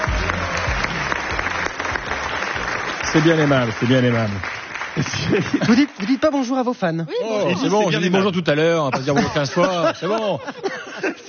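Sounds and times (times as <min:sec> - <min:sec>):
audience applauding: 0:00.0 - 0:06.8
speech: 0:03.1 - 0:11.2
laughter: 0:05.0 - 0:06.2, 0:07.2 - 0:11.2.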